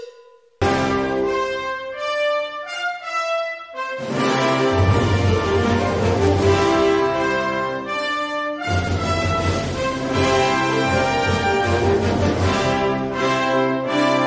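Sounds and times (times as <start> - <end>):
fanfare tattoo: 0.6 - 14.1.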